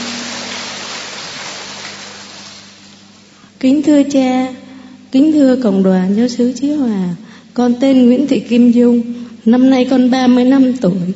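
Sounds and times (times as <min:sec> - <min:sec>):
audience applause: 0:00.0 - 0:02.8
speech: 0:03.6 - 0:11.1.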